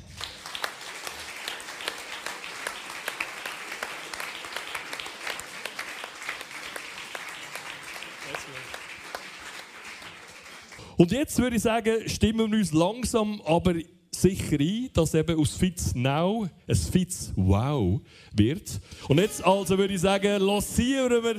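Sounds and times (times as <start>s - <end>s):
audience applause: 0.0s - 10.9s
speech: 11.0s - 21.3s.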